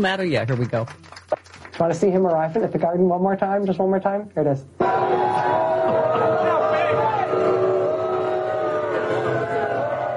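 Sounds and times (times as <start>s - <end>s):
speech: 0.0s - 1.2s, 1.8s - 6.3s
crowd booing inside the venue: 4.8s - 10.1s.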